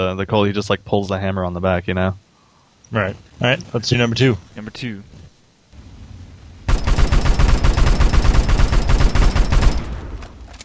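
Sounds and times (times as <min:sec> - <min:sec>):
speech: 0:00.0 - 0:02.2, 0:02.9 - 0:05.2
mounted video-game gun firing a rapid burst: 0:06.7 - 0:10.2.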